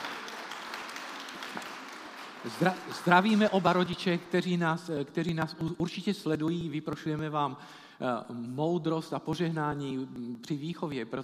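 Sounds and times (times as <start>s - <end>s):
church congregation applauding to welcome a newborn son: 0.0s - 5.2s
speech: 2.4s - 11.2s.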